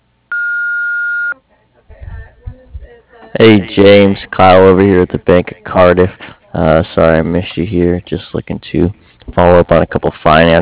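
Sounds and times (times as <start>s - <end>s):
answering machine beep: 0.3s - 1.4s
speech: 3.3s - 10.6s.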